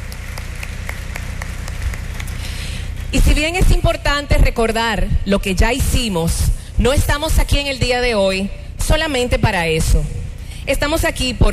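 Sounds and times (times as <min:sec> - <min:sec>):
audience applause: 0:00.0 - 0:03.1
speech: 0:03.1 - 0:11.5.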